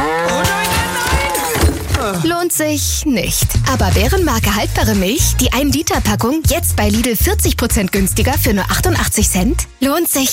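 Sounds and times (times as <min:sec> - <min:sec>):
cow mooing: 0:00.0 - 0:01.6
speech: 0:02.5 - 0:10.3.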